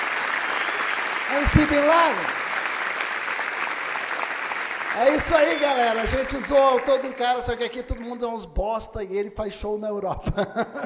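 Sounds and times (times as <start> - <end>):
applause: 0.0 - 8.4
speech: 1.3 - 2.4, 5.0 - 10.8
laughter: 10.2 - 10.8.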